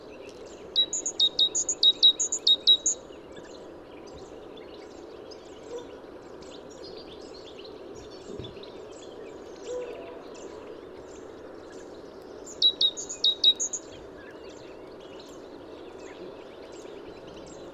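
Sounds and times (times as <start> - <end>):
great tit Parus major giving soft chirps: 0.3 - 17.7.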